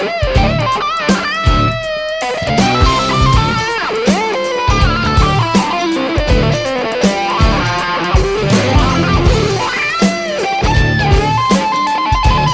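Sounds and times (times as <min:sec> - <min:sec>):
RMC Picture wah pedal effect: 0:00.0 - 0:12.5.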